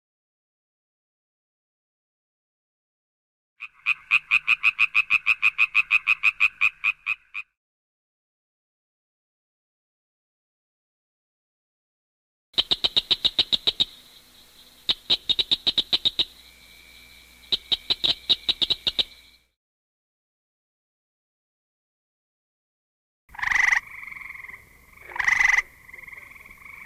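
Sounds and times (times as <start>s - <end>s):
frogs croaking in nature: 3.6s - 7.6s, 12.6s - 19.5s, 23.3s - 26.8s.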